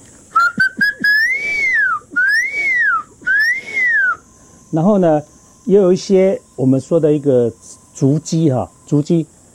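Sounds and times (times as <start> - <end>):
man whistling imitation of a crested serpent eagle call: 0.3 - 4.3
speech: 4.7 - 9.4.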